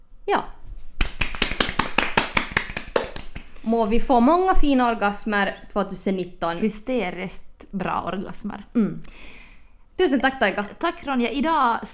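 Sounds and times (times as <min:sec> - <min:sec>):
speech: 0:00.3 - 0:00.5, 0:03.7 - 0:09.4, 0:10.0 - 0:11.9
small group applauding: 0:01.0 - 0:03.6.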